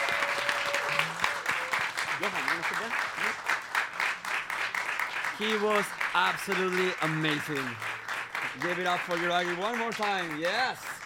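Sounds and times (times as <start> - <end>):
applause: 0.0 - 11.0
speech: 2.2 - 3.5, 5.4 - 7.9, 8.6 - 10.9.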